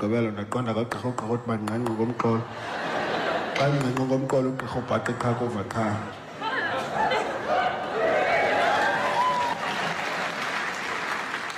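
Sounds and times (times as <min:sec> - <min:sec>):
speech: 0:00.0 - 0:02.9, 0:03.6 - 0:06.2
laughter: 0:02.3 - 0:10.4
audience clapping: 0:08.0 - 0:11.5.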